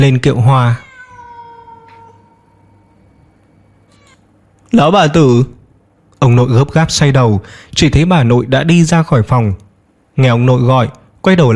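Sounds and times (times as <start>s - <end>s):
speech: 0.0s - 0.8s, 4.7s - 5.6s, 6.2s - 9.6s, 10.2s - 11.5s
wild cat yowling: 0.8s - 4.2s.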